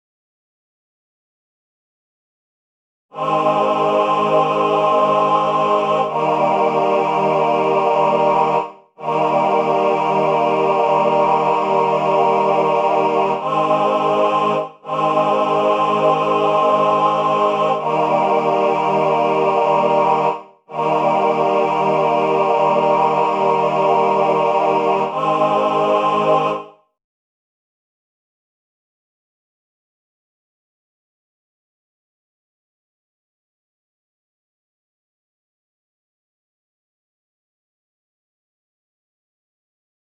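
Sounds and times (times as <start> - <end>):
classical male ensemble singing: 3.2 - 26.8.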